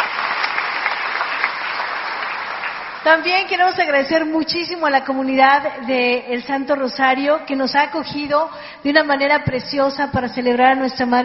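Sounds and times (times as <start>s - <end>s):
audience applause for a bishop at a church celebration of the Virgin Mary: 0.0s - 3.1s
speech: 3.0s - 11.2s.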